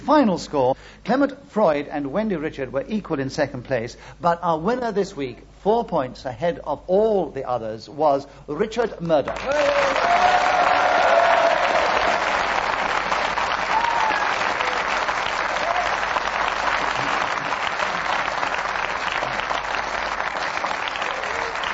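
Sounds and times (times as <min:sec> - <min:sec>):
speech: 0:00.0 - 0:10.6
studio audience applause for the winner of a panel game: 0:09.3 - 0:21.7.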